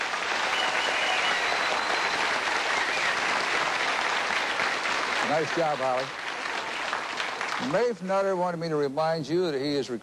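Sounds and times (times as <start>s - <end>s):
audience applause at the Gaslight: 0.0s - 8.1s
speech: 5.3s - 6.2s, 7.6s - 10.0s.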